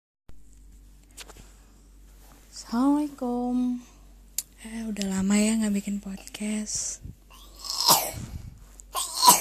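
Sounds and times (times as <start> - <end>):
speech: 2.6 - 3.9, 4.6 - 7.2
child coughing: 7.3 - 8.3, 8.9 - 9.3.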